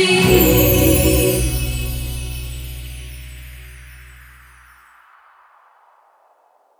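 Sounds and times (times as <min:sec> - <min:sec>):
shotgun jingle: 0:00.1 - 0:04.8.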